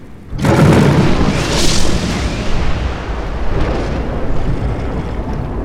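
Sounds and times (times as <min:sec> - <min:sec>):
fantasy monster dragon air attack: 0:00.4 - 0:05.5.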